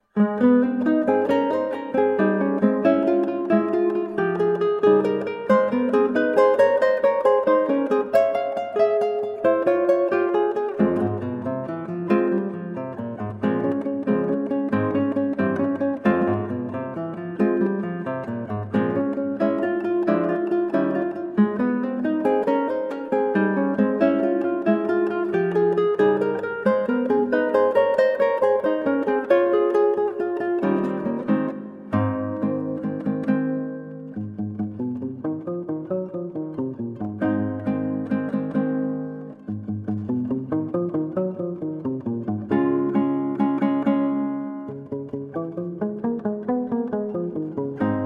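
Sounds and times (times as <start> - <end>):
prelude in A flat major: 0.0 - 48.0.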